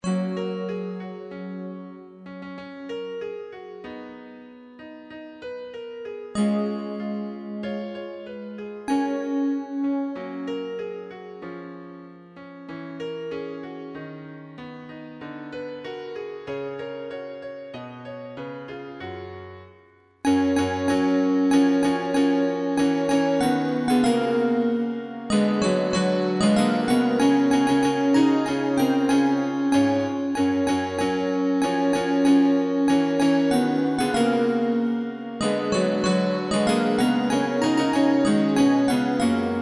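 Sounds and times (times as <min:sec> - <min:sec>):
jingle: 0:00.0 - 0:01.7, 0:06.4 - 0:10.9, 0:20.3 - 0:39.6.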